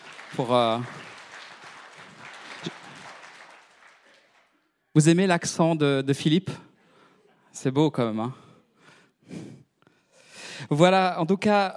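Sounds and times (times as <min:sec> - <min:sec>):
faint audience applause after a reading: 0:00.0 - 0:04.7
speech: 0:00.3 - 0:01.0, 0:05.0 - 0:06.6, 0:07.6 - 0:08.4, 0:10.7 - 0:11.7.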